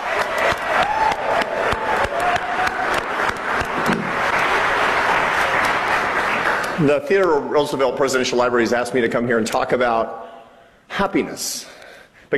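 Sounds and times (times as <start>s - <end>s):
faint cheering: 0.0s - 6.7s
audience applause: 0.0s - 7.2s
speech: 6.8s - 10.3s, 11.0s - 12.3s.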